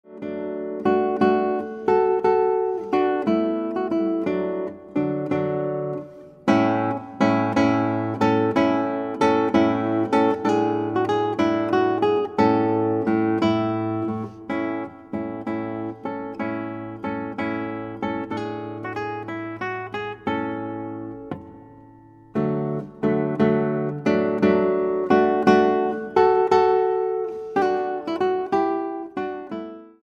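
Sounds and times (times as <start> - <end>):
guitar: 0.0 - 30.0.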